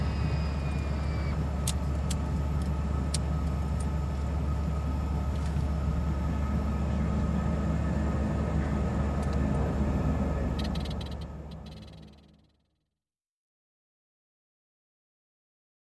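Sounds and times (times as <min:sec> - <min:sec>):
aircraft engine room hum: 0:00.0 - 0:12.8.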